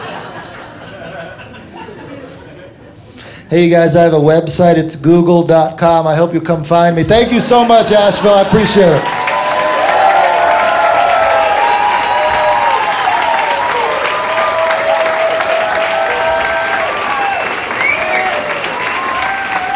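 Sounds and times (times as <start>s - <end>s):
laughter: 0.0s - 3.2s, 7.6s - 9.0s
speech: 3.5s - 9.2s
crowd applauding: 7.9s - 19.7s
whistles and cheers from crowd: 9.0s - 19.7s.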